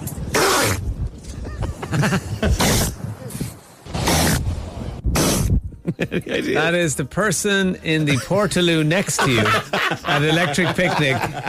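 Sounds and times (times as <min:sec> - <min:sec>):
baby seal sneezing: 0:00.3 - 0:00.9, 0:02.5 - 0:03.0, 0:04.0 - 0:04.5, 0:05.1 - 0:05.6
laughter: 0:01.4 - 0:03.0, 0:05.8 - 0:06.6, 0:08.1 - 0:11.4
speech: 0:01.9 - 0:02.4, 0:06.2 - 0:11.4.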